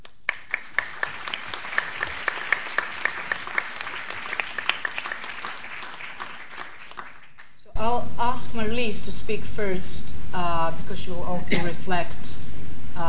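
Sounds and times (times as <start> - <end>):
audience applause welcoming speakers at an evening discussion event: 0.0 - 7.6
speech: 8.4 - 12.4.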